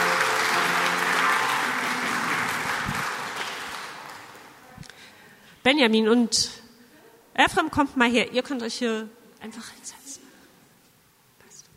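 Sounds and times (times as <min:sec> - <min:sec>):
audience applause: 0:00.0 - 0:04.6
speech: 0:05.6 - 0:06.6, 0:07.4 - 0:10.0.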